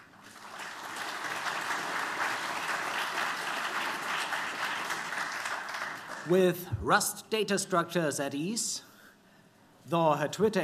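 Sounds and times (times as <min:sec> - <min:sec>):
audience applause: 0:00.0 - 0:06.3
speech: 0:06.3 - 0:08.9, 0:09.9 - 0:10.6.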